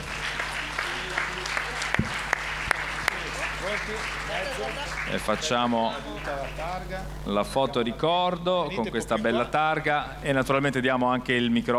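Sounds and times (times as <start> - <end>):
audience applause: 0.0 - 6.9
speech: 3.9 - 11.7.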